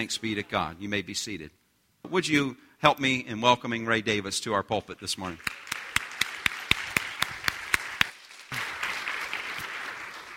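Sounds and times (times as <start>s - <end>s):
speech: 0.0s - 5.8s
audience applause: 5.4s - 10.3s.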